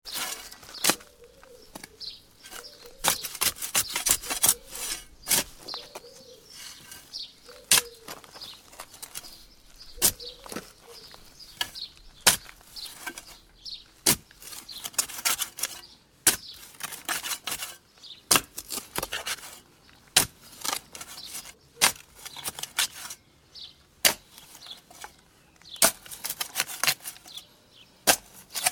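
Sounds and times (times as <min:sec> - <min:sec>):
spade digging soil in summer: 0:00.0 - 0:23.3, 0:24.0 - 0:28.7.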